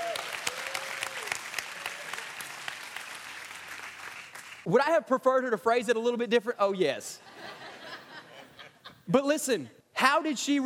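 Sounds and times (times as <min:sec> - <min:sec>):
audience applause: 0:00.0 - 0:04.7
speech: 0:04.6 - 0:07.3, 0:09.1 - 0:10.6
laughter: 0:07.2 - 0:09.1.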